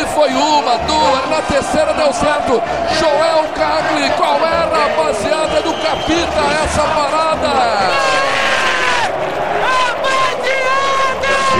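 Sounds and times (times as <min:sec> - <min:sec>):
stadium crowd chanting a player's name: 0:00.0 - 0:11.5
speech: 0:00.2 - 0:08.5.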